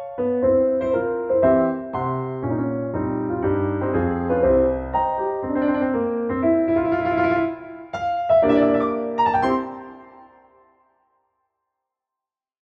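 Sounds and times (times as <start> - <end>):
piano accompaniment: 0.0 - 10.8.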